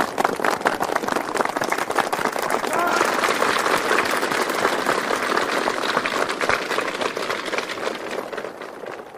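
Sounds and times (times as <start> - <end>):
applause from an audience of students: 0.0 - 9.1
crowd voices: 2.6 - 3.2.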